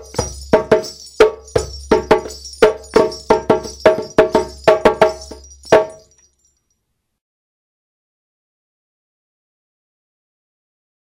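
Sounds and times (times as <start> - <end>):
djembe playing kuku rhythm: 0.0 - 6.1.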